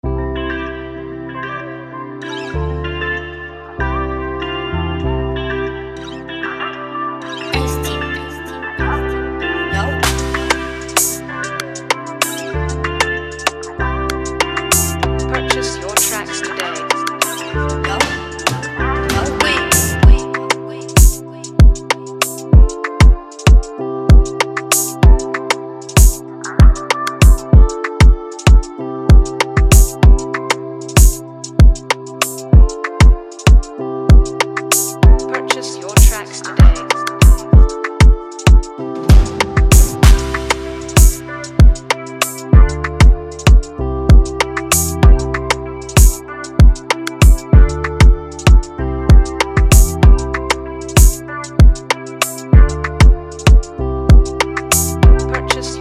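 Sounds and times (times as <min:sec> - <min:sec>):
beat: 0:10.0 - 0:25.3, 0:25.9 - 0:30.3, 0:31.0 - 0:35.2, 0:36.0 - 0:55.7.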